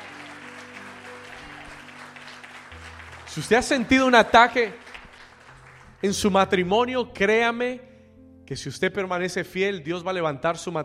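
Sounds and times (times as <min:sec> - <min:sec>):
crowd applause: 0:00.0 - 0:06.4
speech: 0:03.3 - 0:04.8, 0:06.0 - 0:07.9, 0:08.5 - 0:10.8.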